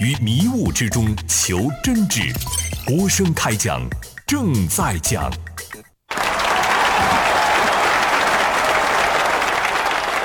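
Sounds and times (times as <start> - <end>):
speech: 0.0 - 5.5
applause: 6.1 - 10.2.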